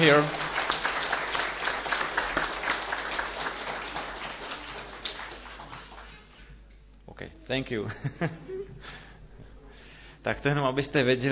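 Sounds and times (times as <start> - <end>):
speech: 0.0 - 0.5, 7.5 - 8.5, 10.2 - 11.2
audience applause welcoming guests: 0.0 - 6.4.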